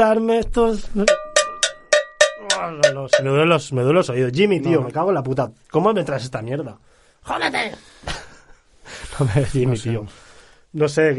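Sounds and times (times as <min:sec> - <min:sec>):
speech: 0:00.0 - 0:01.2, 0:02.5 - 0:08.2, 0:09.2 - 0:11.1
cowbell struck: 0:01.0 - 0:03.7
laughter: 0:08.1 - 0:08.6.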